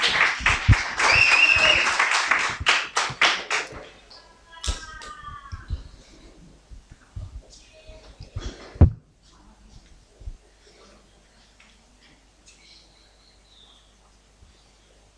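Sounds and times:
church audience applause: 0:00.0 - 0:05.5
faint voices: 0:00.0 - 0:15.1
shrill whistle: 0:00.2 - 0:02.6.

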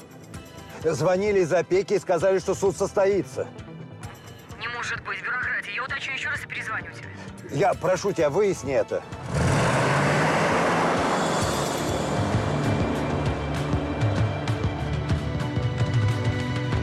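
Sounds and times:
speech: 0:00.8 - 0:03.6, 0:04.9 - 0:09.8
car driving on road: 0:09.0 - 0:16.7.

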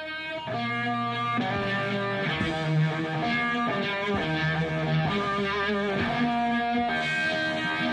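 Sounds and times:
heavily distorted electric guitar playing national anthem at a festival in Woodstock: 0:00.0 - 0:07.9.

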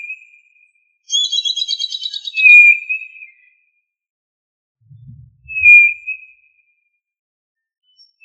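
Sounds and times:
tinamou giving clear slightly falling whistles: 0:01.1 - 0:02.8, 0:05.5 - 0:06.2.

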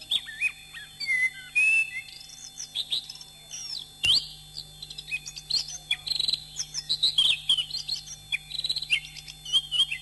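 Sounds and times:
Oriental magpie-robin singing: 0:00.0 - 0:10.0
faint low hum: 0:00.0 - 0:10.0.

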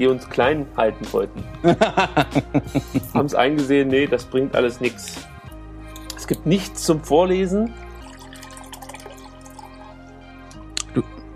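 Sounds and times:
speech: 0:00.0 - 0:05.3, 0:06.3 - 0:07.8, 0:10.9 - 0:11.3
laughter: 0:01.6 - 0:03.2
drink poured into a glass: 0:07.8 - 0:10.1.

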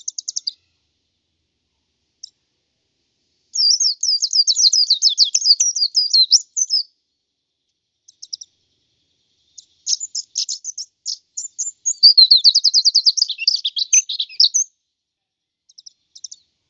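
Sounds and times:
white-eye twittering song: 0:00.0 - 0:00.6, 0:03.6 - 0:06.9, 0:08.1 - 0:08.5, 0:09.4 - 0:14.7, 0:15.7 - 0:16.4.

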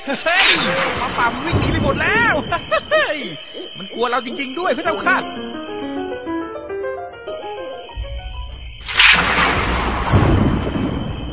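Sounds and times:
laughter: 0:00.0 - 0:05.3
speech: 0:00.1 - 0:05.5
gunshots fired into the air: 0:00.4 - 0:03.2, 0:08.8 - 0:11.3
tonal music: 0:03.4 - 0:08.9.

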